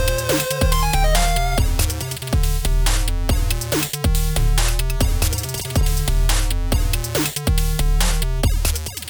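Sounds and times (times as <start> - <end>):
8-bit game level music: 0.0 - 9.0.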